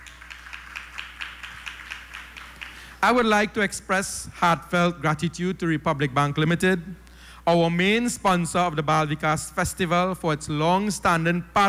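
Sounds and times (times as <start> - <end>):
crowd round of applause: 0.0 - 3.5
speech: 3.0 - 11.6.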